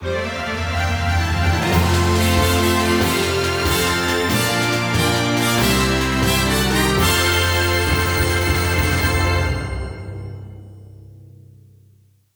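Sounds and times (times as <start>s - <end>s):
fanfare: 0.0s - 10.6s.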